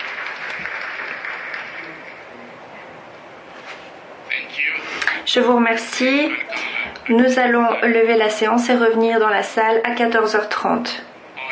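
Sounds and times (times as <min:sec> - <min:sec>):
committee applauding: 0:00.0 - 0:02.4
speech: 0:05.3 - 0:11.1.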